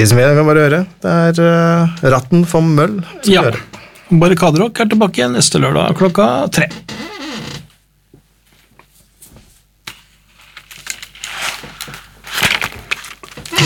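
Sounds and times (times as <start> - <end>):
speech: 0.0 - 7.5
chair creaking: 5.8 - 7.8, 10.4 - 13.6.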